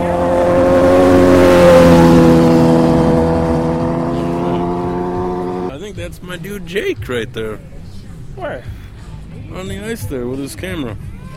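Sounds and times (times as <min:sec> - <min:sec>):
motorcycle engine droning during a wheelie on ice: 0:00.0 - 0:05.7
speech: 0:06.1 - 0:07.8, 0:08.4 - 0:08.8, 0:09.5 - 0:11.1.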